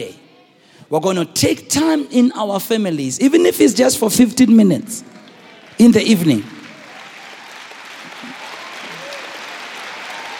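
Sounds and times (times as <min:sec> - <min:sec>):
speech: 0:00.9 - 0:05.2, 0:05.8 - 0:06.6
crowd clapping: 0:05.0 - 0:10.3.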